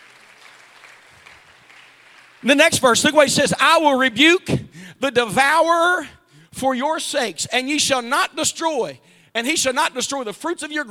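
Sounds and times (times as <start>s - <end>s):
audience clapping: 0.0s - 2.5s
speech: 2.4s - 10.8s.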